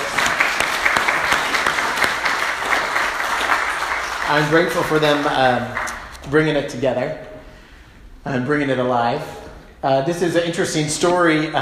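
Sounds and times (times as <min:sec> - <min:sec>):
audience applause: 0:00.0 - 0:06.1
speech: 0:04.3 - 0:07.3, 0:08.2 - 0:11.5.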